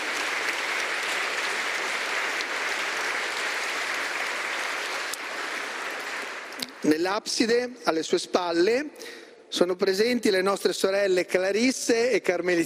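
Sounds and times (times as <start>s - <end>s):
large audience applauding an orchestra: 0.0s - 6.9s
speech: 6.8s - 12.6s.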